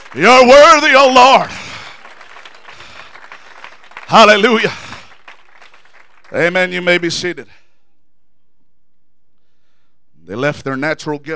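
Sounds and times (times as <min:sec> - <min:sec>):
audience clapping hands: 0:00.0 - 0:07.4
speech: 0:00.1 - 0:01.6, 0:04.1 - 0:04.8, 0:06.3 - 0:07.6, 0:10.3 - 0:11.3.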